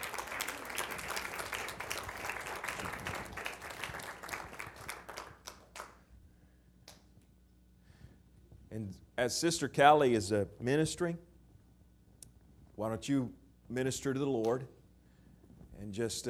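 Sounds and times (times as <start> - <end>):
audience hand clapping: 0.0 - 6.0, 6.8 - 7.2
speech: 8.8 - 11.3, 12.8 - 14.8, 15.8 - 16.2.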